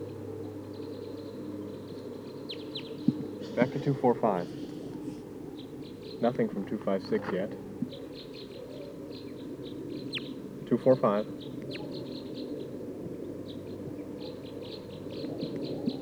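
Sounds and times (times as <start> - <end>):
flock of type 2 birds calling in a pine tree: 0.0 - 16.0
speech: 3.6 - 4.6, 6.2 - 8.0, 10.7 - 11.8.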